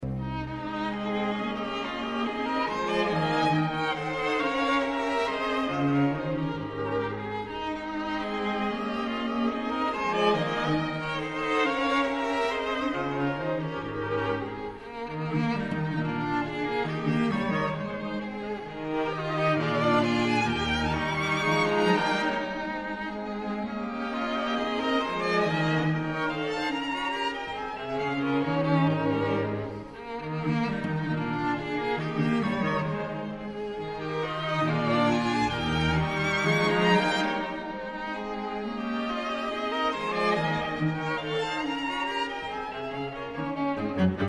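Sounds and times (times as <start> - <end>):
string quartet in C minor: 0.0 - 44.2.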